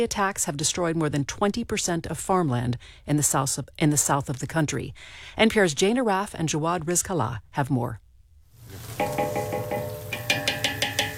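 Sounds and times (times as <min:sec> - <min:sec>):
speech: 0:00.0 - 0:08.0
slivered almonds sizzling in margarine in a huge aluminum pot outdoors: 0:08.6 - 0:11.1
metal clinks and scrapes of stirring in a huge aluminum pot: 0:08.8 - 0:11.1.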